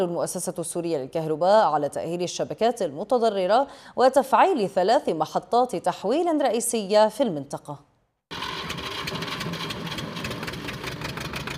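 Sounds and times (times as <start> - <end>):
speech: 0.0 - 7.9
diesel mazut power generator running for a grain-sifting workshop: 8.3 - 11.5.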